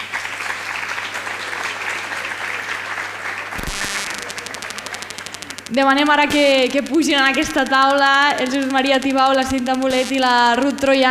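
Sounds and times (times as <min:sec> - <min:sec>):
audience applause: 0:00.0 - 0:05.1
speech: 0:05.7 - 0:11.1.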